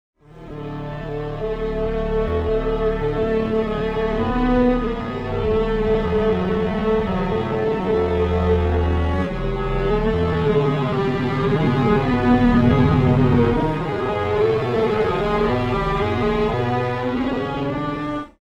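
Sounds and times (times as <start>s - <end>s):
strings: 0.2s - 18.4s.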